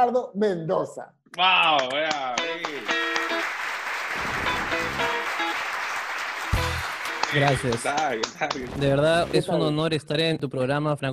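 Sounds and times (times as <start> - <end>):
speech: 0.0 - 3.6, 7.3 - 11.1
audience applauding to welcome a guest: 1.7 - 8.8.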